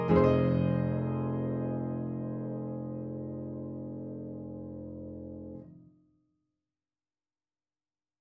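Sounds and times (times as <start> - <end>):
upright piano: 0.0 - 5.7.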